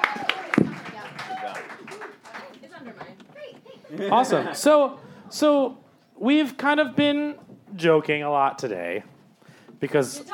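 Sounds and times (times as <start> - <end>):
audience applause: 0.0 - 2.8
speech: 3.9 - 9.1, 9.8 - 10.3.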